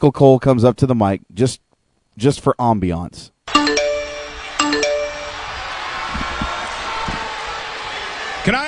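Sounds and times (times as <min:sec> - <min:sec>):
speech: 0:00.0 - 0:03.8, 0:08.4 - 0:08.6
WWE email notification sound: 0:03.5 - 0:05.6.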